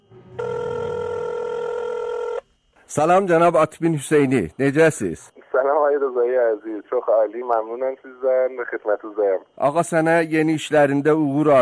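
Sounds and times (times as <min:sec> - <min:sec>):
electronic telephone ring tone: 0:00.0 - 0:02.4
speech: 0:02.9 - 0:11.5.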